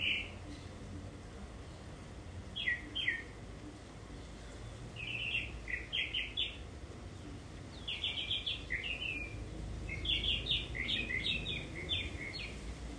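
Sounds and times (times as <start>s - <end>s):
tropical mockingbird singing: 0.0s - 0.8s, 2.5s - 3.4s, 4.2s - 12.7s.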